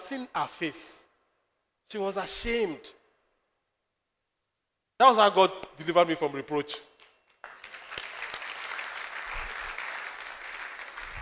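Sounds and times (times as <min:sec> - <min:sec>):
speech: 0:00.1 - 0:01.0, 0:01.9 - 0:03.0, 0:05.0 - 0:06.9
audience applauding: 0:07.4 - 0:11.1.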